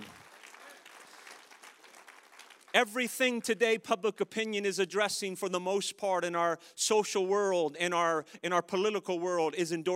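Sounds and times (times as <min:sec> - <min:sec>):
audience applause: 0:00.0 - 0:02.8
speech: 0:02.8 - 0:09.9.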